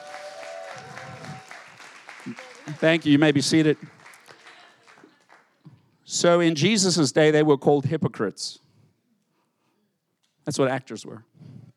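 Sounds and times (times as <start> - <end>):
crowd applause: 0.0 - 5.6
speech: 2.2 - 4.0, 6.2 - 8.6, 10.4 - 11.5.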